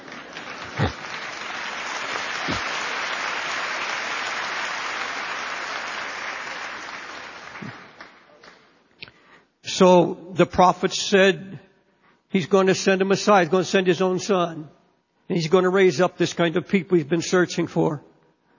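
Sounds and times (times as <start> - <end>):
audience clapping: 0.0 - 8.9
speech: 9.8 - 11.6, 12.3 - 18.1.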